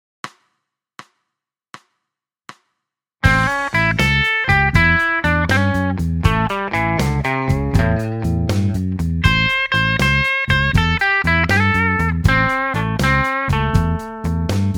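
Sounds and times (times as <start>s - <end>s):
blues music: 3.2s - 14.7s.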